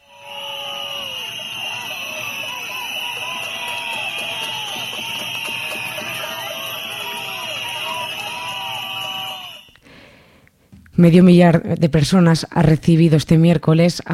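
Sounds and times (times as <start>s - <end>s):
people shouting: 0.0s - 9.7s
protest crowd whistling: 0.0s - 9.8s
speech: 11.0s - 14.1s.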